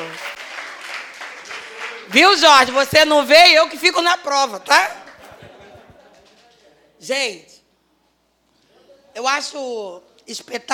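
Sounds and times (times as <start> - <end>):
audience applause: 0.0 - 2.2
speech: 2.1 - 5.0, 7.0 - 7.5, 9.2 - 10.7
laughter: 5.1 - 6.8.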